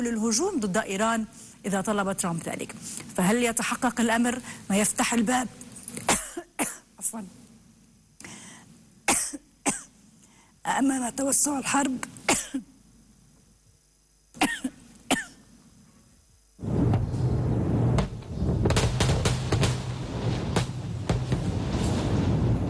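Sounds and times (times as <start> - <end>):
speech: 0.0 - 6.1, 7.1 - 7.4, 10.7 - 12.7
massive explosion by the Israeli army in southern Lebanon: 16.6 - 22.6.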